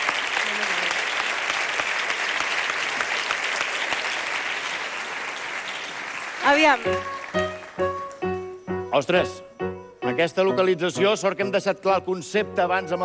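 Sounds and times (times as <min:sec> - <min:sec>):
applause: 0:00.0 - 0:08.2
speech: 0:06.5 - 0:07.5, 0:09.0 - 0:13.0.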